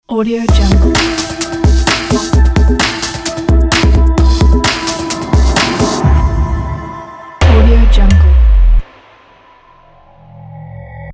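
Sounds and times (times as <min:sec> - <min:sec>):
breakbeat logo jingle: 0:00.5 - 0:09.4.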